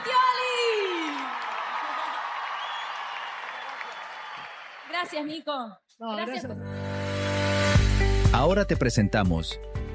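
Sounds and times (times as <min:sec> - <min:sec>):
applause: 0:00.0 - 0:05.4
speech: 0:05.0 - 0:06.9, 0:08.0 - 0:09.9.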